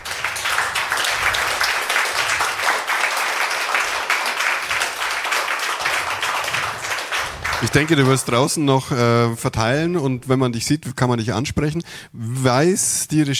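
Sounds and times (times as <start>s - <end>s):
audience applause after a conference talk: 0.0s - 8.6s
speech: 7.6s - 13.3s.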